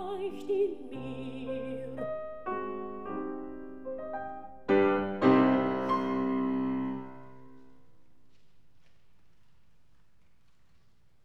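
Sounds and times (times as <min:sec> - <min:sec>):
person singing: 0:00.0 - 0:02.2
piano: 0:00.0 - 0:08.8.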